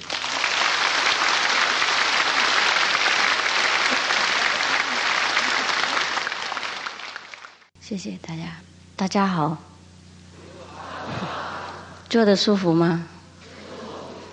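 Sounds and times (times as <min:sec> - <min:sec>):
large audience applause: 0:00.0 - 0:07.7
laughter: 0:01.4 - 0:07.1, 0:10.4 - 0:12.1, 0:13.4 - 0:14.3
speech: 0:07.9 - 0:09.7, 0:12.1 - 0:13.1.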